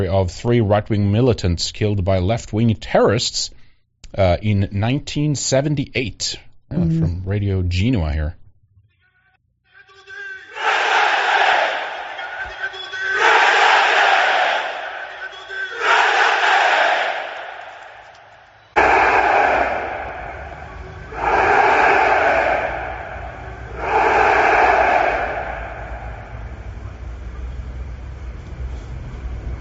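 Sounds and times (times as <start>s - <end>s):
speech: 0.0s - 8.4s
demonstration crowd chanting: 10.0s - 26.9s
steady low rumble: 25.4s - 29.5s.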